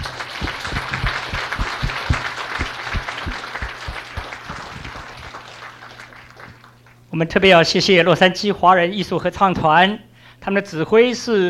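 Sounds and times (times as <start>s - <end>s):
audience applause: 0.0s - 7.0s
speech: 7.2s - 11.4s.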